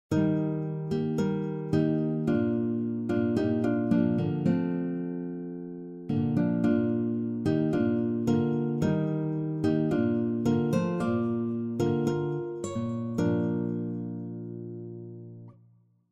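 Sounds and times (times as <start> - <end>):
guitar tune: 0.1 - 15.6.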